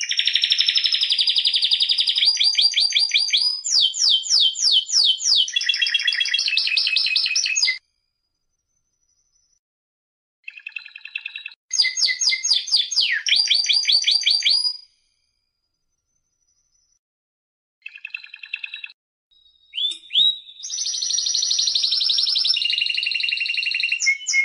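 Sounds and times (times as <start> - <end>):
canary song: 0.0 - 7.8, 10.4 - 15.0, 17.8 - 24.4.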